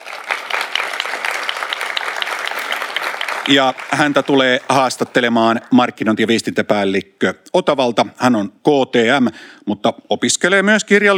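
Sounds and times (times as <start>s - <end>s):
audience applause: 0.0s - 5.8s
speech: 3.5s - 11.1s.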